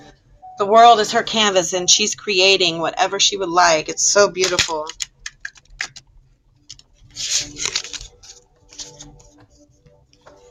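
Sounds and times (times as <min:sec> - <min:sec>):
speech: 0:00.6 - 0:05.0
deck of cards being shuffled: 0:04.4 - 0:06.0, 0:06.6 - 0:09.4.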